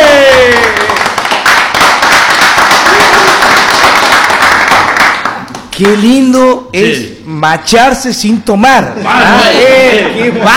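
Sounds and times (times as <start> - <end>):
loud applause: 0.0 - 5.7
speech: 5.8 - 10.5
laughter: 9.0 - 10.5.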